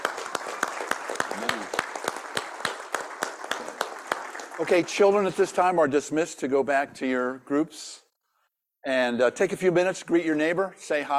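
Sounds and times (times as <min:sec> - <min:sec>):
audience applause: 0:00.0 - 0:05.5
speech: 0:04.6 - 0:08.0, 0:08.8 - 0:11.1.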